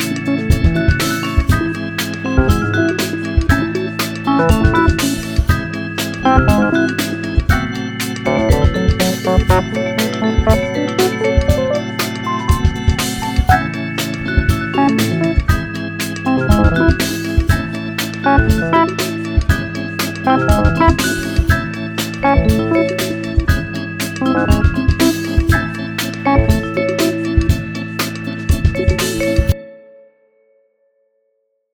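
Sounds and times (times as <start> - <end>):
organ music: 0.0 - 29.6.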